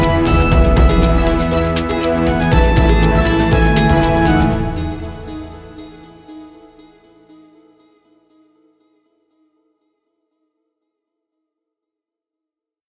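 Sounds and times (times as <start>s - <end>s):
frame drum playing: 0.0s - 5.5s.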